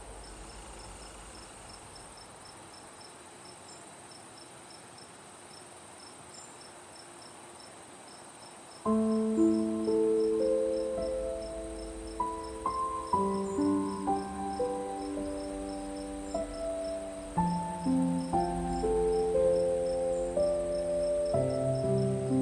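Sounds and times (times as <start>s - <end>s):
crickets chirping at night: 0.0s - 22.4s
soft hiss: 0.0s - 22.4s
gentle piano playing slow notes and chords: 8.8s - 22.4s.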